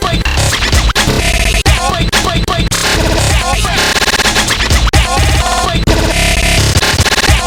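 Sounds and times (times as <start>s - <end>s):
drum break sample: 0.0s - 7.4s.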